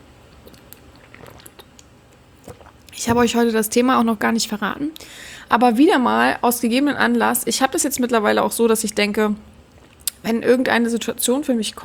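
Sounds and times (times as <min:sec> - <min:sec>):
wet mouth clicks: 0:00.4 - 0:03.4, 0:09.7 - 0:10.2
person drinking still water: 0:00.4 - 0:03.6
speech: 0:03.0 - 0:09.5, 0:10.2 - 0:11.8.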